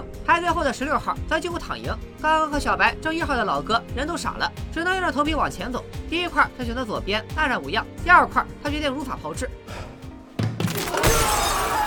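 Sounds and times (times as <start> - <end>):
speech: 0.3 - 9.9
glass panel shattering: 10.6 - 11.8
glass fragments tinkling and scattering: 10.7 - 11.8.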